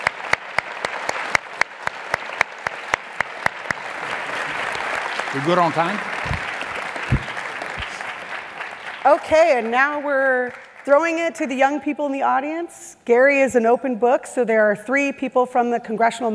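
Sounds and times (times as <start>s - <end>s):
round of applause: 0.0s - 10.9s
speech: 5.3s - 6.4s, 9.0s - 16.3s.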